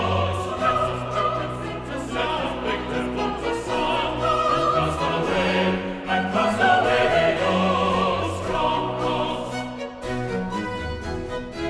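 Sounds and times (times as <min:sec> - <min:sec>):
chorus singing: 0:00.0 - 0:11.6.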